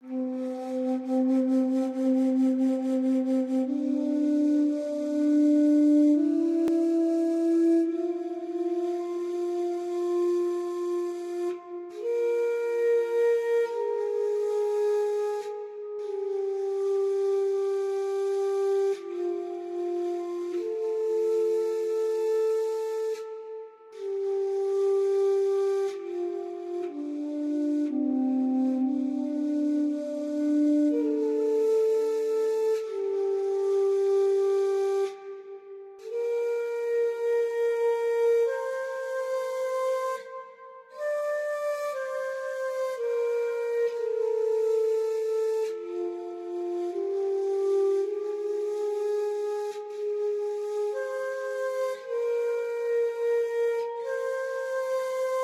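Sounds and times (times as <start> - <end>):
flute: 0.0 - 55.4.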